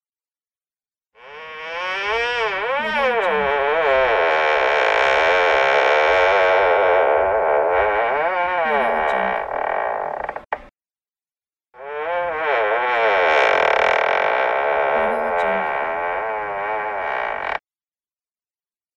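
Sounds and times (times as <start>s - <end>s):
creaking squeak: 1.2s - 10.7s, 11.8s - 17.6s.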